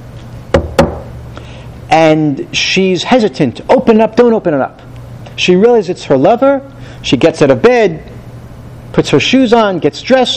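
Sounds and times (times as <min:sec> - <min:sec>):
knocking on a locked bedroom door: 0:00.5 - 0:01.1
speech: 0:02.0 - 0:08.1, 0:08.9 - 0:10.3.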